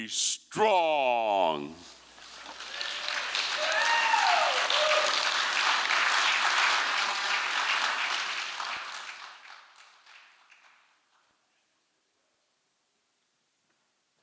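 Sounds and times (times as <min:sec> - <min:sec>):
speech: 0:00.0 - 0:01.9
audience applause: 0:02.2 - 0:11.0.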